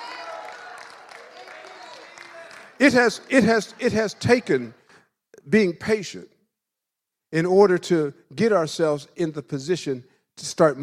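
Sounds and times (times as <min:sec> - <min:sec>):
audience clapping: 0:00.0 - 0:05.0
speech: 0:02.8 - 0:04.8, 0:05.5 - 0:06.3, 0:07.3 - 0:10.8.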